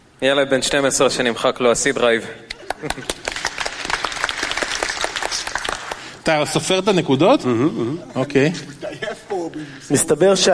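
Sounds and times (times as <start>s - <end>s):
speech: 0.2s - 3.4s, 6.3s - 10.5s
laughter: 2.5s - 4.0s
crowd applauding: 2.6s - 6.2s.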